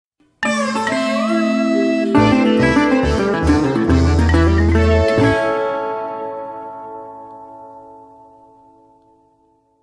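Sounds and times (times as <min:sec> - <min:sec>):
reward sound: 0:00.4 - 0:05.6.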